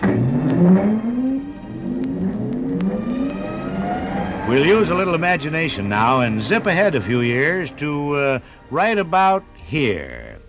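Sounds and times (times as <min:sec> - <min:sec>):
time machine starting up with whirring mechanical hum: 0:00.0 - 0:07.1
speech: 0:04.5 - 0:10.4.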